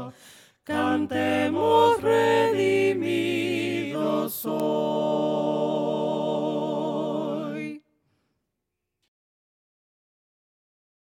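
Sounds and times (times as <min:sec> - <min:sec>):
voices singing hymns a cappella: 0:00.0 - 0:07.9.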